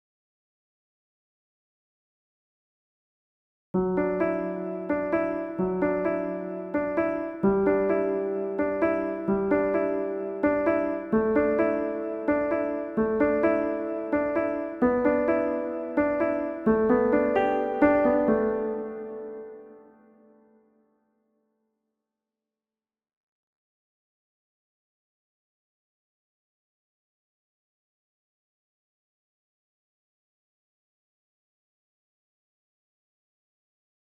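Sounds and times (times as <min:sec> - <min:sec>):
piano: 0:03.8 - 0:20.6.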